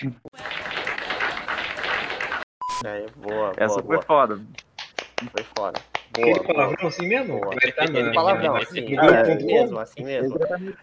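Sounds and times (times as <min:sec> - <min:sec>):
speech: 0:00.0 - 0:00.5, 0:02.8 - 0:10.8
applause: 0:00.0 - 0:02.5, 0:04.6 - 0:07.1
laughter: 0:05.2 - 0:10.8.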